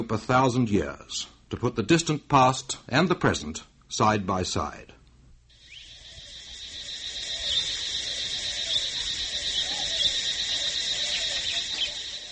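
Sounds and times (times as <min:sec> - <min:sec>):
speech: 0:00.0 - 0:04.9
shrill insects in a western Cambodian jungle: 0:05.5 - 0:12.3.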